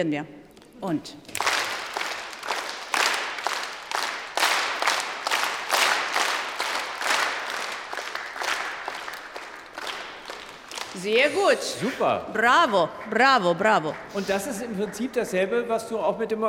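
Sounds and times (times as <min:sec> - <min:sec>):
speech: 0:00.0 - 0:01.4, 0:11.0 - 0:16.4
group clapping in triple time, loud and soft: 0:00.8 - 0:11.2, 0:12.0 - 0:15.9.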